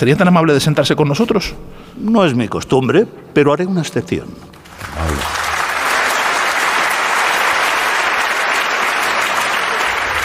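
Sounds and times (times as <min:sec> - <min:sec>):
speech: 0:00.0 - 0:05.4
audience applauding: 0:04.6 - 0:10.2.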